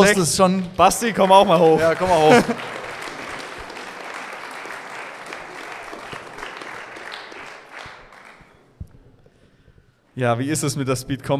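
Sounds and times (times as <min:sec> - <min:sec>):
speech: 0:00.0 - 0:02.8, 0:10.2 - 0:11.3
audience applause: 0:00.8 - 0:08.8
laughter: 0:01.3 - 0:04.7.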